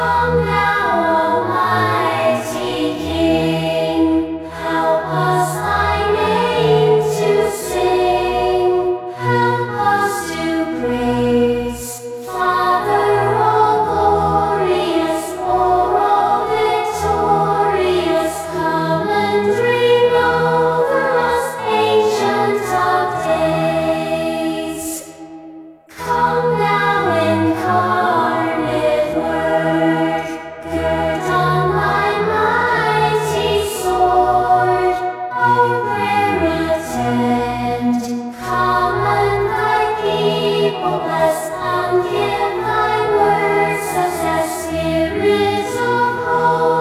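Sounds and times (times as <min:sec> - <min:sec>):
choir singing: 0:00.0 - 0:46.7.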